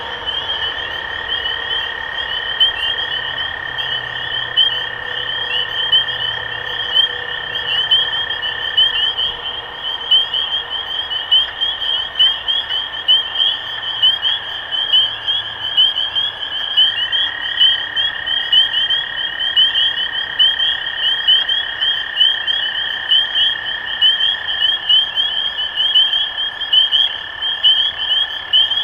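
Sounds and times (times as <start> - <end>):
low trilling drone: 0.0 - 20.2
spring peepers peeping in chorus: 0.0 - 28.8.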